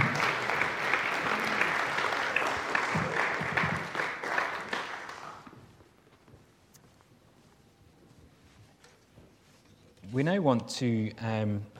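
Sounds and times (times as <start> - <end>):
audience applause: 0.0 - 5.5
speech: 10.2 - 11.7.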